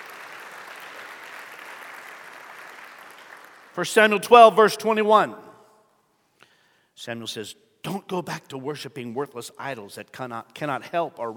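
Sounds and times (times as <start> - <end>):
audience clapping together in praise: 0.0 - 3.8
speech: 3.8 - 5.4, 7.0 - 11.3.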